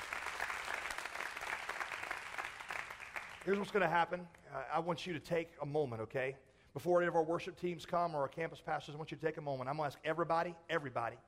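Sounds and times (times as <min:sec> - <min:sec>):
audience applause: 0:00.0 - 0:03.7
speech: 0:03.4 - 0:11.2.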